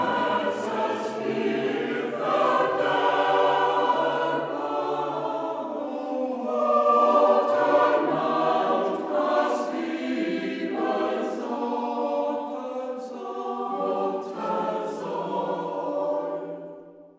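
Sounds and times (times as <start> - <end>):
Transylvanian Saxon choir singing in the Hermannstadt dialect: 0.0 - 17.1.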